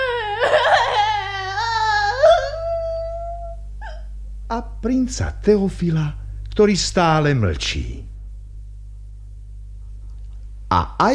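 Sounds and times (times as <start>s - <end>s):
child crying: 0.0s - 4.0s
speech: 4.6s - 8.1s, 10.7s - 11.1s.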